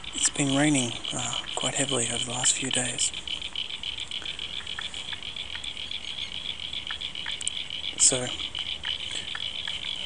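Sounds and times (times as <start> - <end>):
frogs in chorus: 0.0 - 10.0
speech: 0.3 - 3.3, 8.1 - 8.5.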